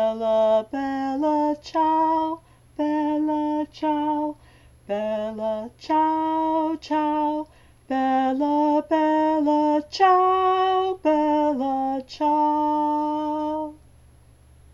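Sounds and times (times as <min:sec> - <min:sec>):
tenor singing a niggun slowly: 0:00.0 - 0:13.9.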